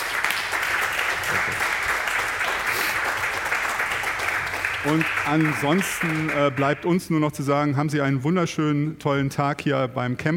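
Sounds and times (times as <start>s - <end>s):
audience applause: 0.0s - 6.8s
speech: 1.3s - 1.8s, 4.8s - 10.3s.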